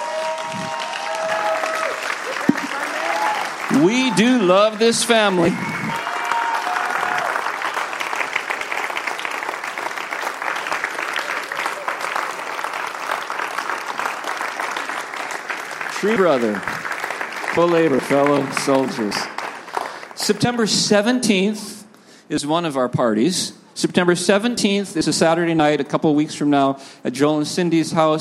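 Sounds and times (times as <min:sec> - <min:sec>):
audience applause: 0:00.0 - 0:20.5
man speaking over a microphone: 0:03.6 - 0:05.7, 0:15.9 - 0:16.7, 0:17.5 - 0:19.4, 0:20.2 - 0:28.1
speech: 0:03.8 - 0:05.8, 0:16.0 - 0:16.8, 0:17.6 - 0:19.3, 0:20.3 - 0:28.1.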